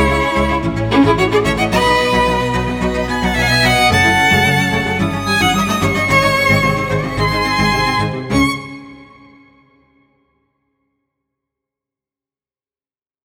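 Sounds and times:
modern energetic cellos: 0.0 - 9.7
modern energetic violins: 0.0 - 9.8.

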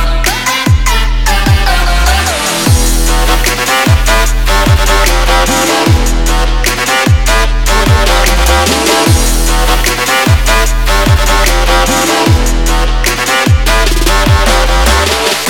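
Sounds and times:
trap beat: 0.0 - 15.4.

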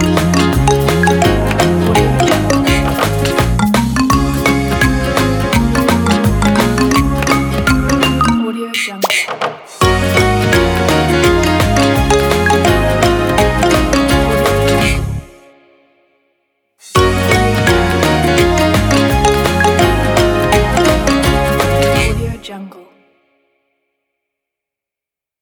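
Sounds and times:
happy kids drum kit: 0.0 - 8.4, 9.0 - 15.2, 16.8 - 22.2.

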